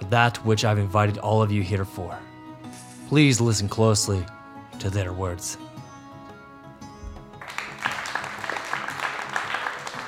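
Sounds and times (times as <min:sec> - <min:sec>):
speech: 0:00.1 - 0:02.3, 0:03.1 - 0:05.7
audience clapping: 0:07.4 - 0:10.0.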